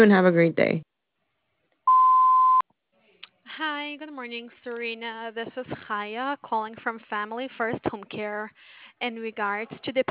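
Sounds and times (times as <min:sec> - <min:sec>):
speech: 0:00.0 - 0:00.9, 0:03.6 - 0:10.1
voicemail beep tone: 0:01.9 - 0:02.6.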